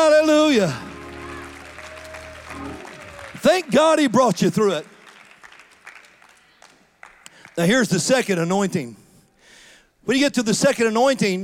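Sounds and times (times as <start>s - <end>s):
audience clapping hands: 0.0s - 8.4s
speech: 0.5s - 0.9s, 3.4s - 4.9s, 7.6s - 9.0s, 10.0s - 11.4s.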